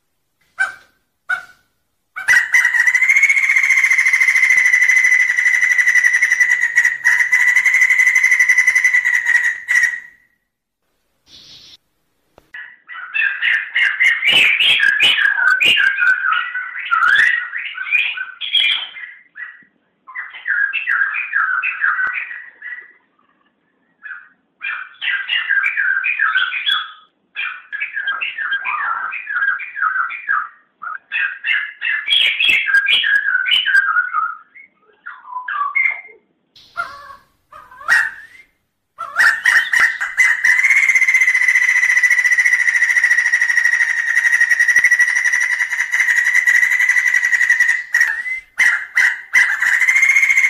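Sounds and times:
bird warbling song: 0.6s - 10.3s, 11.2s - 11.8s, 12.5s - 50.4s.

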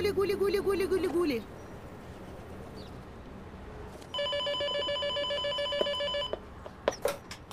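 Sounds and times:
speech: 0.0s - 1.6s
telephone ringing: 4.1s - 6.4s.

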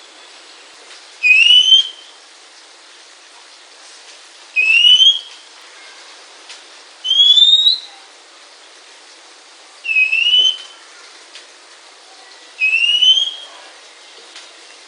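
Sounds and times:
Oriental magpie-robin singing clear slightly rising whistles: 1.2s - 2.1s, 4.6s - 5.3s, 7.0s - 8.0s, 9.9s - 10.8s, 12.6s - 13.5s.

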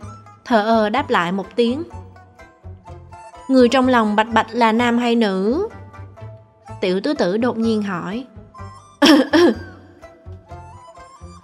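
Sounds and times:
speech: 0.5s - 2.0s, 3.5s - 5.8s, 6.8s - 8.3s, 9.0s - 9.7s
person coughing after choking on food: 9.0s - 10.1s.

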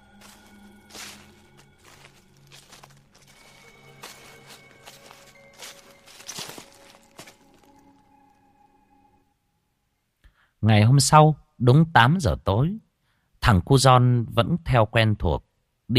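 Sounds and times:
footsteps rustling on dry leaves: 0.0s - 8.0s
speech: 10.7s - 12.9s, 13.5s - 15.9s.

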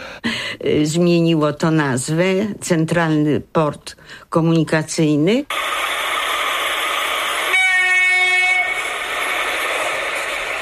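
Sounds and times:
speech: 0.6s - 6.0s
passing train: 5.5s - 10.6s.

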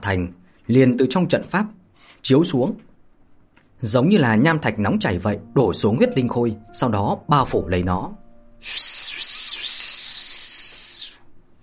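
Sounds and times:
speech: 0.0s - 2.9s, 3.8s - 9.8s
sizzling hiss: 8.6s - 11.2s.

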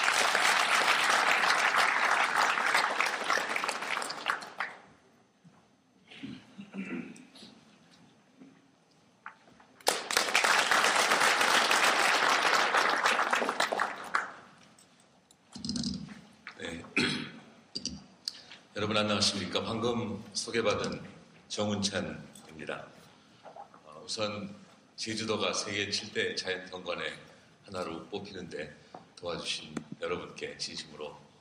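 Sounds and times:
audience applause: 0.0s - 4.8s, 9.8s - 14.5s
speech: 19.0s - 23.0s, 24.1s - 31.2s.

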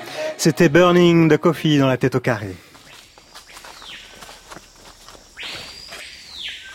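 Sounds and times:
speech: 0.4s - 2.7s
papayo screaming piha loud whistle-like song: 5.3s - 6.7s.

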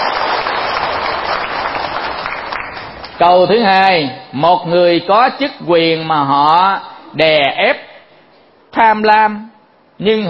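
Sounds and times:
audience applause at a Buddhist dharma talk: 0.0s - 3.2s
speech: 3.2s - 7.8s, 8.8s - 10.2s.

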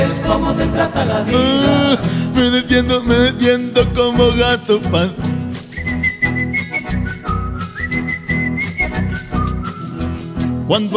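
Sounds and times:
speech: 0.6s - 5.4s, 10.7s - 10.9s
person whistling a tune: 5.6s - 10.3s.

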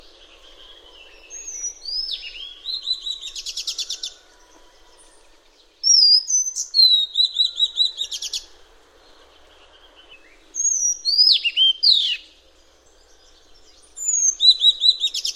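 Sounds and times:
Madagascar magpie-robin singing: 1.0s - 4.0s, 5.8s - 8.5s, 10.6s - 12.3s, 13.9s - 15.3s.

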